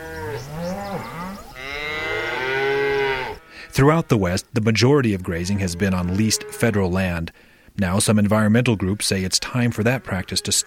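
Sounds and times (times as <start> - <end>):
cattle mooing: 0.0 - 4.2, 5.4 - 6.8
speech: 3.8 - 10.6.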